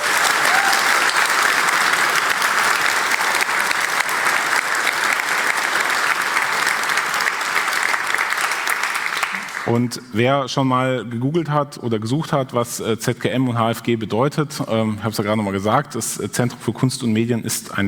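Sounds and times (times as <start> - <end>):
audience applause: 0.0 - 9.8
speech: 9.7 - 17.8.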